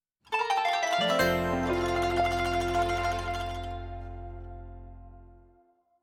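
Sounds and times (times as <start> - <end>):
promo outro music: 1.0 - 5.5.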